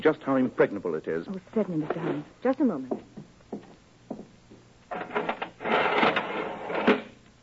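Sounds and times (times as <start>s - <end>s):
speech: 0.0s - 3.6s
iron window shutter being lowered: 4.9s - 7.2s.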